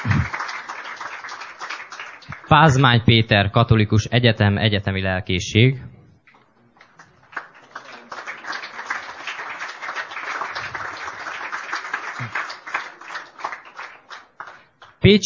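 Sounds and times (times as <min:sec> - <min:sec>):
audience applause: 0:00.0 - 0:02.8, 0:06.8 - 0:14.9
speech: 0:02.5 - 0:05.9, 0:15.1 - 0:15.2.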